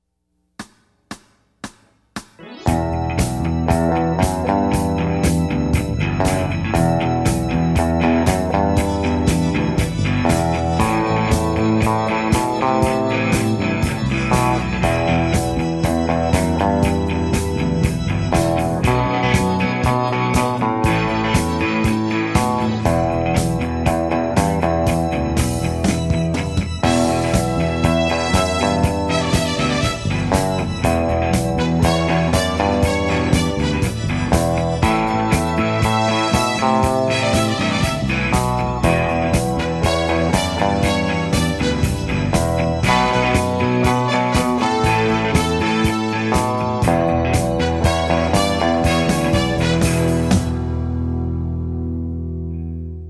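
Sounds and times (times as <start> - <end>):
overdrive distortion: 2.4 - 53.0.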